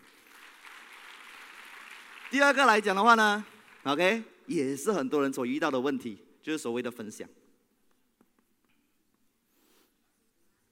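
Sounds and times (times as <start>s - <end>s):
audience applause: 0.0s - 4.0s
speech: 2.3s - 7.4s.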